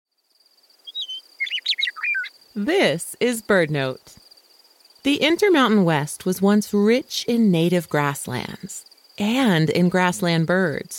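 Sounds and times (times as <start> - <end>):
meadowlark song: 0.8 - 2.4
speech: 2.6 - 4.2, 5.0 - 10.9.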